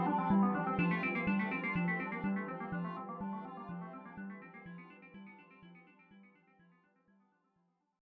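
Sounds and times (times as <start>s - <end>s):
guitar playing at 124 bpm: 0.0s - 4.2s.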